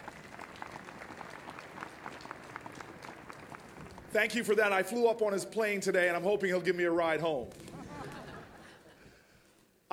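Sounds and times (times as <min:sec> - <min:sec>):
audience applause: 0:00.0 - 0:04.1
speech: 0:04.1 - 0:07.6
laughter: 0:07.6 - 0:09.2.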